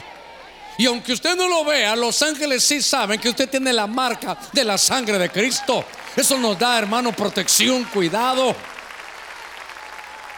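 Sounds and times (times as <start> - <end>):
speech: 0.8 - 8.7
audience clapping hands: 3.8 - 10.3.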